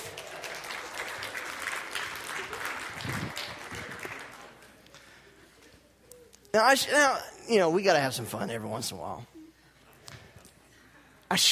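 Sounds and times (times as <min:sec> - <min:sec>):
crowd applauding: 0:00.0 - 0:05.2
speech: 0:06.6 - 0:09.4.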